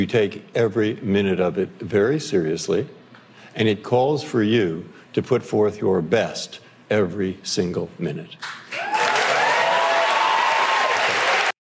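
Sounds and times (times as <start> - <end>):
speech: 0.0 - 3.0, 3.6 - 8.6
whoops: 8.7 - 11.4
Colbert show studio audience cheering and applauding: 8.7 - 11.6.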